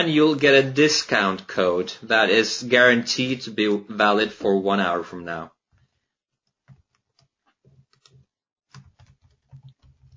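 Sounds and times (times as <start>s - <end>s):
speech: 0.0s - 5.6s
typing on a computer keyboard: 6.5s - 10.1s.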